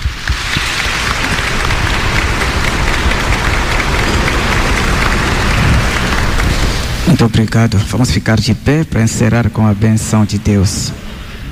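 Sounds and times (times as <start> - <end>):
church audience applause: 0.0 - 7.6
speech: 7.1 - 11.1.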